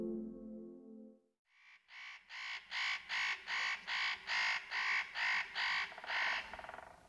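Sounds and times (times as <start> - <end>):
spotted nutcracker harsh rasping calls: 1.5 - 7.0.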